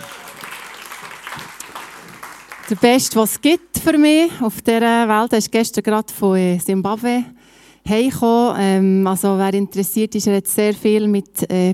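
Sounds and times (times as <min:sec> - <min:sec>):
audience applause: 0:00.0 - 0:03.0
speech: 0:02.7 - 0:11.7.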